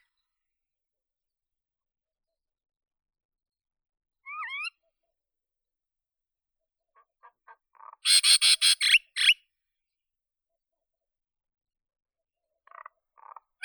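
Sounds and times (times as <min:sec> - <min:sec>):
common myna Acridotheres tristis calling: 0:07.9 - 0:09.3.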